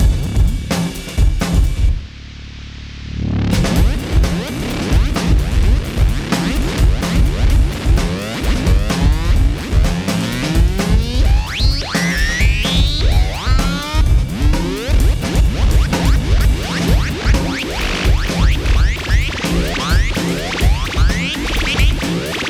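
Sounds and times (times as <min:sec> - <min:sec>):
beat loops: 0:00.0 - 0:22.4.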